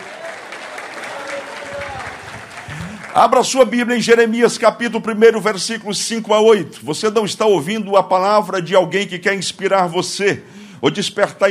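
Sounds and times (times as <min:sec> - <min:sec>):
people cheering: 0:00.0 - 0:03.8
audience applauding: 0:00.0 - 0:03.9
speech: 0:03.2 - 0:11.4.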